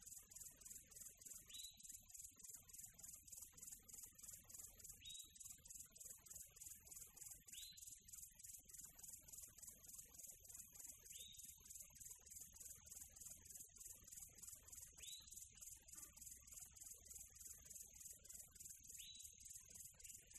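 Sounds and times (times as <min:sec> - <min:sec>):
quiet tropical birds in nature: 0:00.0 - 0:20.3.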